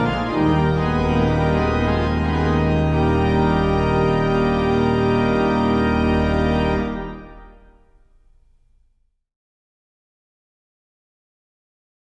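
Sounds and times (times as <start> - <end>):
organ music: 0.0 - 8.5.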